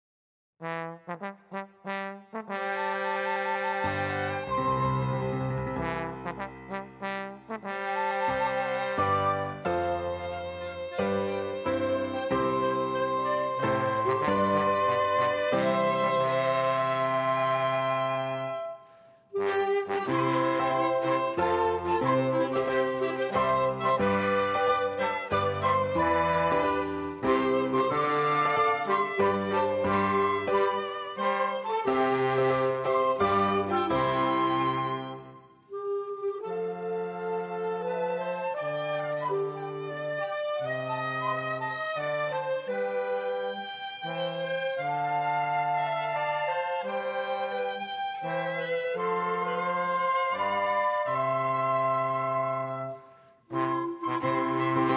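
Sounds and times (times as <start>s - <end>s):
instrumental music: 0.6s - 54.9s.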